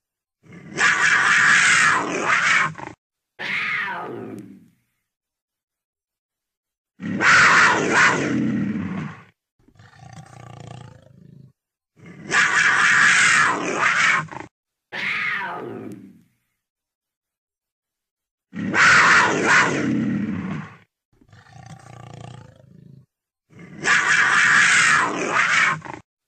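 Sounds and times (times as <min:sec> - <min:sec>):
puma: 0:00.4 - 0:05.0, 0:07.0 - 0:16.5, 0:18.5 - 0:26.0.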